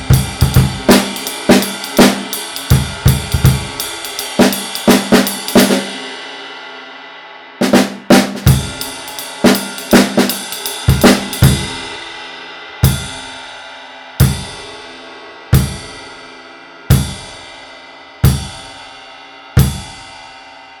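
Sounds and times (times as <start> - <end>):
20 inch ride cymbal: 0.0 - 6.2, 8.4 - 20.2.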